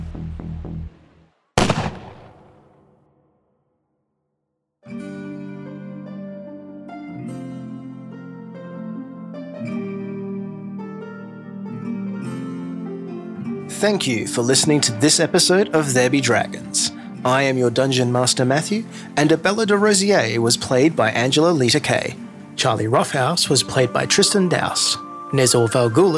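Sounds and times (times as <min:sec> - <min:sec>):
music: 0:00.0 - 0:01.6, 0:04.8 - 0:26.1
pistol gunshot in a fantasy role-play game: 0:01.6 - 0:02.9
speech: 0:13.8 - 0:26.1.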